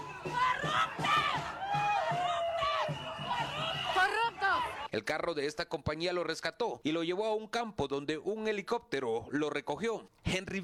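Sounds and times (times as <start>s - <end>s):
crowd shouting insults at a politician: 0.0s - 4.9s
speech: 4.9s - 10.6s.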